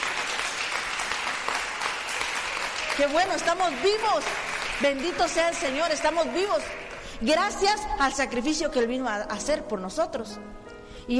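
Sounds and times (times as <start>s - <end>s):
congregation clapping for the Lord during a Spanish-language church service: 0.0s - 7.6s
speech: 3.0s - 11.1s.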